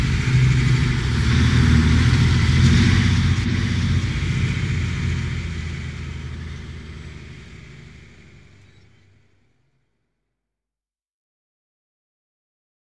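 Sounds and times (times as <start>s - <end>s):
heavy truck passing: 0.0s - 9.5s.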